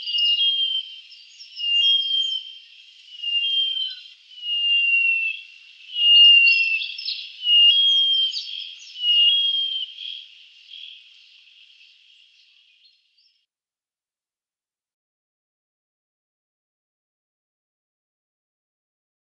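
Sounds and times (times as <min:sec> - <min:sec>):
black-eared cuckoo calling: 0:00.0 - 0:12.7.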